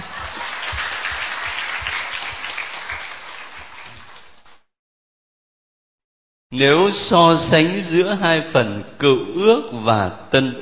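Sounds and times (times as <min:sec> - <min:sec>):
Catholic Bible study group applauding: 0:00.0 - 0:04.7
speech: 0:06.5 - 0:10.6.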